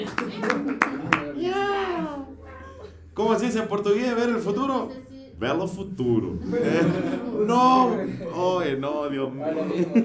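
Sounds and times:
applause: 0:00.0 - 0:01.4
speech: 0:03.2 - 0:10.0
laughter: 0:06.0 - 0:10.0.

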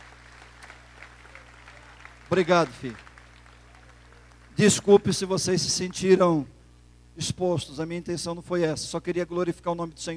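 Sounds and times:
audience applause: 0:00.0 - 0:04.9
speech: 0:02.3 - 0:03.0, 0:04.6 - 0:06.6, 0:07.2 - 0:10.1.

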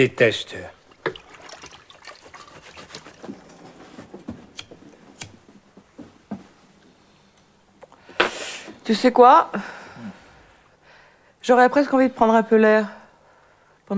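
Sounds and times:
speech: 0:00.0 - 0:00.8, 0:08.9 - 0:10.1, 0:11.4 - 0:13.0
running water trickling: 0:00.7 - 0:03.6.

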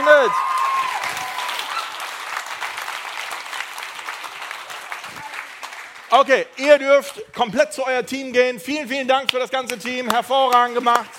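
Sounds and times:
audience applause: 0:00.0 - 0:06.2
speech: 0:00.2 - 0:00.6, 0:06.2 - 0:11.1.

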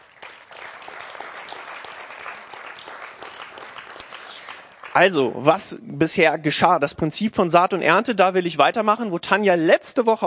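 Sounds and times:
audience applause: 0:00.0 - 0:05.5
speech: 0:05.0 - 0:10.2.

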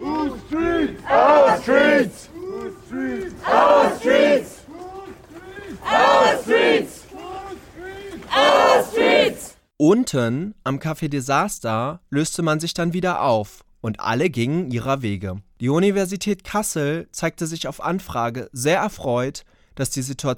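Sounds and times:
people calling: 0:00.0 - 0:09.6
crowd of protesters chanting a slogan: 0:00.0 - 0:09.7
speech: 0:09.8 - 0:20.3.

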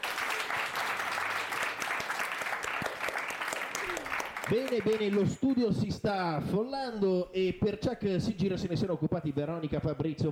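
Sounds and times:
studio audience applauding during a school radio show about cinema: 0:00.0 - 0:05.8
speech: 0:04.5 - 0:10.3.

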